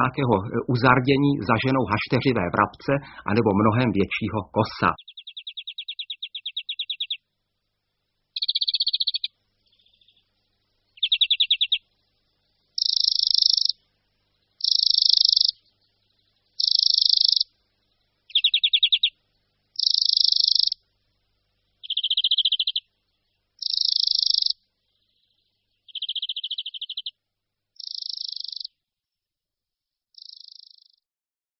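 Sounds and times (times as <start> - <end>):
speech: 0.0 - 5.2
European greenfinch trills and nasal wheezes: 0.0 - 7.2, 8.4 - 11.9, 12.7 - 13.8, 14.6 - 17.5, 18.2 - 19.2, 19.8 - 20.8, 21.8 - 22.9, 23.6 - 27.2, 27.8 - 28.8, 30.2 - 31.0.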